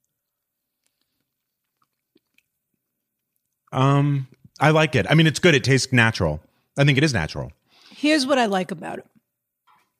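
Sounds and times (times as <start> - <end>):
person chewing cacao: 0.0 - 3.7
speech: 3.7 - 9.1.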